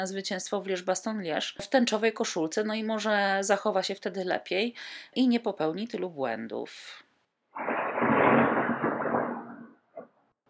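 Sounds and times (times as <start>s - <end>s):
speech: 0.0s - 7.0s, 7.6s - 7.8s
thunder rumbling: 7.6s - 10.0s.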